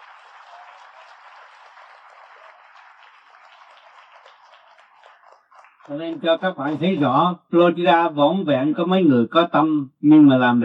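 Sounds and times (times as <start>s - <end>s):
crowd applause: 0.0s - 7.0s
speech: 5.8s - 10.6s.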